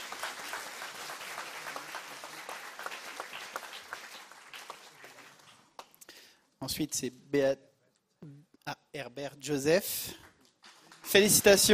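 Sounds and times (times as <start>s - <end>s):
audience applause: 0.0s - 5.9s, 10.6s - 11.7s
speech: 6.6s - 10.2s, 11.1s - 11.7s.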